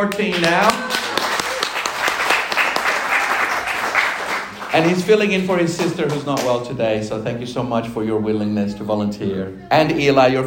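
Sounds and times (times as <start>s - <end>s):
speech: 0.0s - 1.0s, 4.7s - 10.4s
audience clapping: 0.0s - 6.8s.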